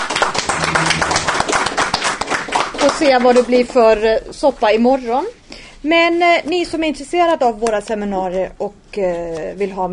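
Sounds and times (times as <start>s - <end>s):
audience applause at a gathering: 0.0s - 3.2s
speech: 2.8s - 9.9s.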